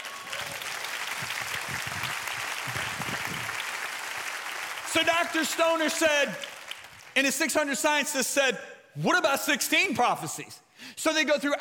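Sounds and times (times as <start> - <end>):
audience clapping: 0.0 - 7.4
speech: 5.0 - 6.5, 7.2 - 11.5.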